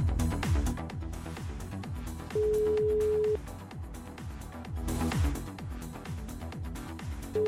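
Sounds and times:
rhythmic background: 0.0s - 7.4s
telephone ringback tone waiting for an answer: 2.4s - 3.4s.

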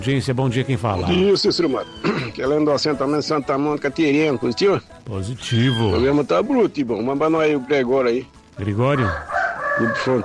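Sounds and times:
speech: 0.0s - 10.2s
rooster crowing on a rural settlement: 8.9s - 10.2s.

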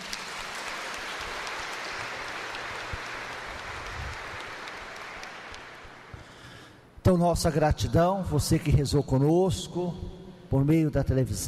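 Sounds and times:
applause: 0.0s - 6.7s
speech: 7.1s - 11.4s.

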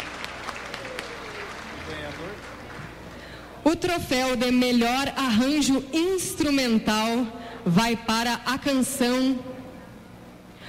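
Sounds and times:
audience applause: 0.0s - 3.1s
speech: 3.7s - 9.5s.

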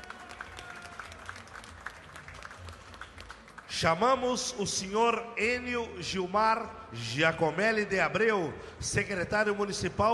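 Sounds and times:
round of applause: 0.0s - 4.2s
speech: 3.8s - 10.1s.

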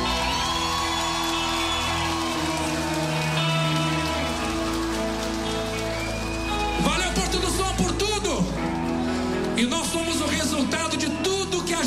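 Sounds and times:
audience applause: 0.0s - 11.8s.

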